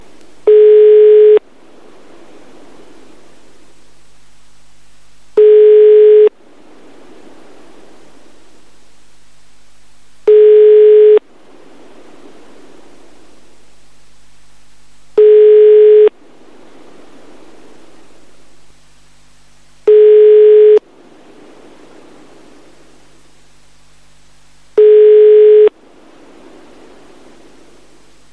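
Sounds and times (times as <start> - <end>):
dial tone: 0.5 - 1.4, 5.4 - 6.3, 10.3 - 11.2, 15.2 - 16.1, 19.9 - 20.8, 24.8 - 25.7.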